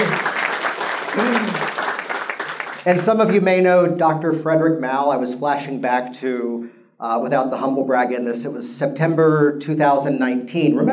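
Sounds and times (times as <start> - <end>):
audience applause: 0.0 - 3.0
speech: 2.8 - 10.9.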